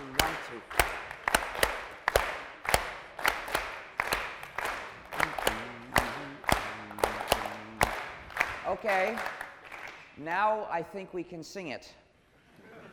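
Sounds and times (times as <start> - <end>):
rhythmic hand clapping: 0.0 - 10.2
speech: 0.6 - 0.9, 8.7 - 9.4, 10.2 - 12.0.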